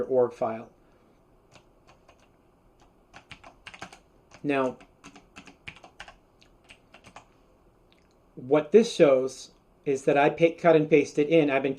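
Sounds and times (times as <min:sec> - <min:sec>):
speech: 0:00.0 - 0:00.8, 0:04.4 - 0:04.9, 0:08.4 - 0:11.7
computer keyboard typing: 0:01.5 - 0:07.3.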